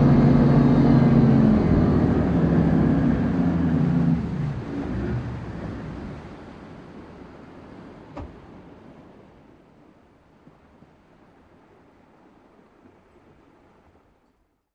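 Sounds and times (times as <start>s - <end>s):
military PBR boat engine starting, reversing and accelerating onboard: 0.0s - 9.6s.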